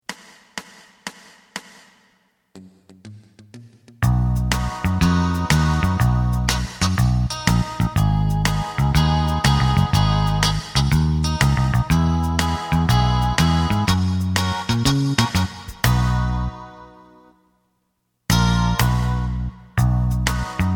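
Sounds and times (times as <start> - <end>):
lead melody: 4.1 - 17.4, 18.3 - 20.7.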